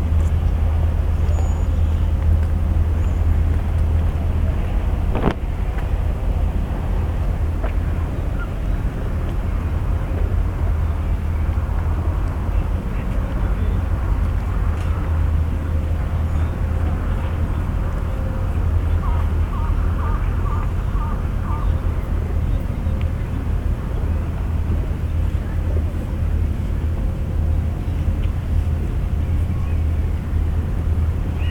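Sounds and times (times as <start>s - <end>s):
engine rumbling at Yokohama Port: 0.0s - 31.4s.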